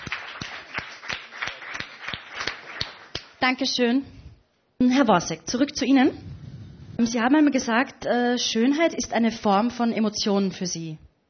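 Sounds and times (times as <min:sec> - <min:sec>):
rhythmic audience applause: 0:00.0 - 0:03.4
speech: 0:03.4 - 0:04.2, 0:04.8 - 0:06.3, 0:07.0 - 0:11.1.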